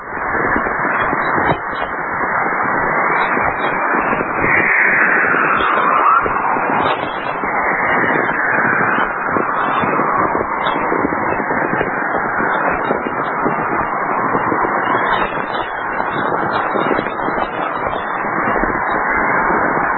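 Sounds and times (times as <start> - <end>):
crackling radio static from aurora borealis emissions: 0.0 - 19.9
aurora borealis whistling radio emission: 4.4 - 10.7.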